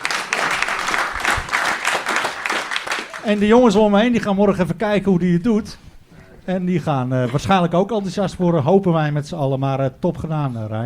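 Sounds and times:
applause from a group: 0.0s - 3.7s
speech: 3.2s - 5.8s, 6.4s - 10.8s.

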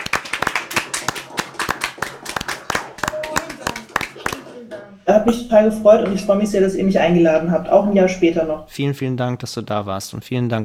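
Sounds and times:
small group applauding: 0.0s - 4.6s
speech: 5.1s - 10.6s.

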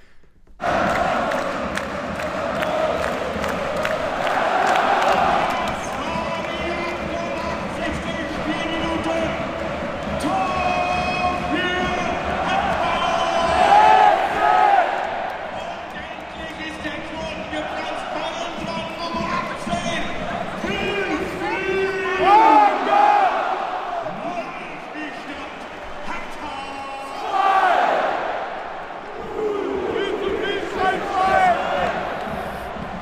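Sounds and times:
crowd shouting: 0.6s - 6.2s, 9.8s - 15.4s, 20.4s - 25.8s, 27.0s - 33.0s
football stadium crowd cheering and chanting: 0.6s - 33.0s.

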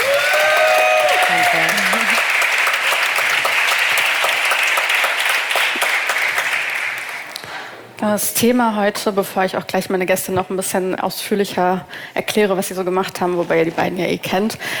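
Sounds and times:
cheers and whoops: 0.0s - 2.3s
crowd applause: 0.0s - 7.5s
speech: 8.0s - 14.7s.

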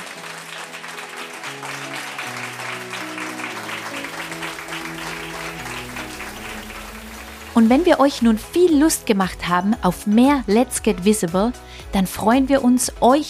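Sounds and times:
thunderous audience applause: 0.0s - 8.4s
speech: 7.6s - 13.2s.

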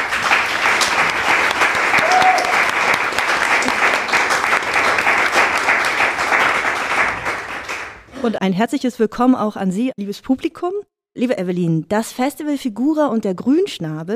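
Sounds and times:
audience applause: 0.0s - 8.1s
faint whoop: 1.9s - 2.7s
speech: 8.2s - 14.1s.

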